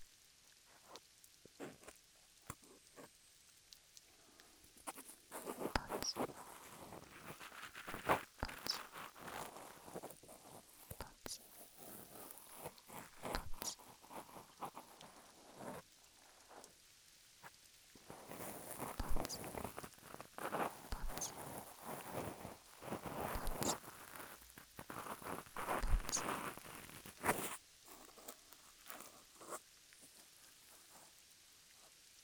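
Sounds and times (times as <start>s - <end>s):
ear cleaning in right ear: 5.4s - 10.1s, 11.3s - 14.8s, 18.3s - 29.1s.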